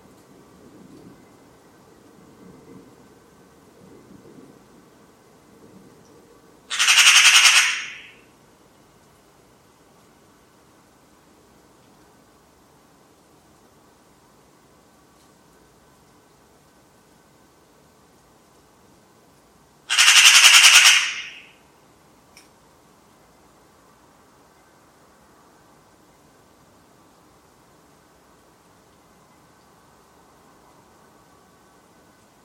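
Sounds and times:
bird harsh pulsed rattling squawk: 6.7s - 8.2s, 19.9s - 21.6s.

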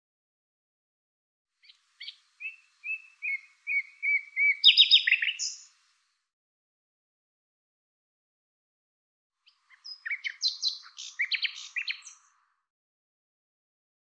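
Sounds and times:
bird chirping: 1.6s - 5.8s, 9.4s - 12.6s.

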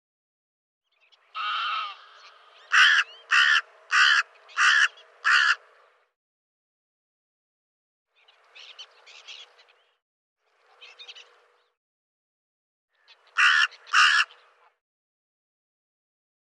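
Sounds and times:
bird giving harsh raspy caws: 1.3s - 5.8s, 12.9s - 14.8s.

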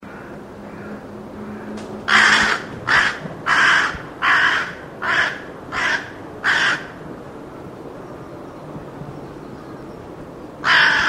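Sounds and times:
bird giving rough nasal caws: 0.0s - 7.0s, 10.6s - 11.0s.

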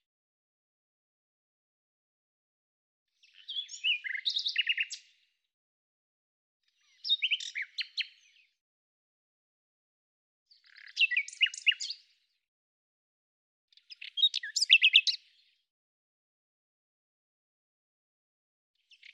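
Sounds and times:
bird song: 3.1s - 5.5s, 6.6s - 8.6s, 10.5s - 12.5s, 13.7s - 15.7s, 18.8s - 19.1s.

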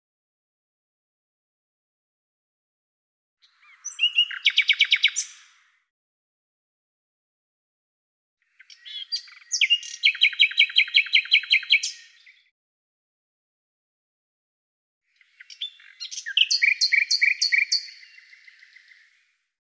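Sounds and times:
bird singing sharp chirps buzzy trills and rapid repeated notes: 3.4s - 5.6s, 8.5s - 12.5s, 15.2s - 19.2s.

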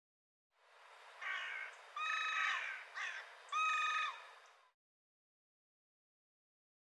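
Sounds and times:
bird harsh caws: 1.2s - 4.4s.

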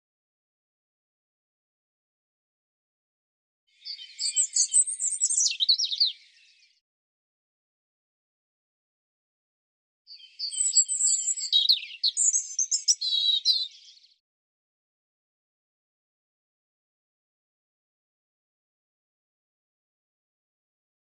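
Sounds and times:
European robin singing: 3.7s - 6.8s, 10.1s - 14.2s.

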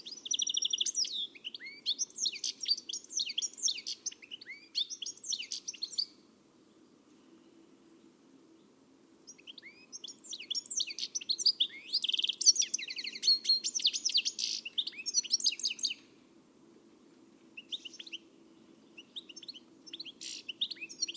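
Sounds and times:
bird twittering chirps and trills: 0.0s - 6.2s, 9.3s - 16.1s, 17.6s - 21.1s.

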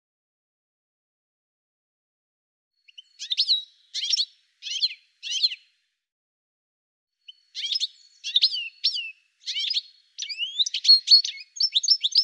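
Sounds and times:
bird chirping and trilling: 2.9s - 5.7s, 7.2s - 12.2s.

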